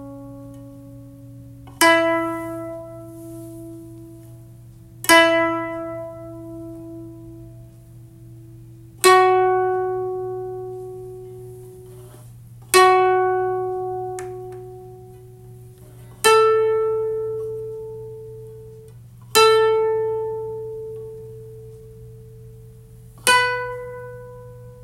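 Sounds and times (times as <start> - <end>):
koto being tuned: 0.0 - 24.8.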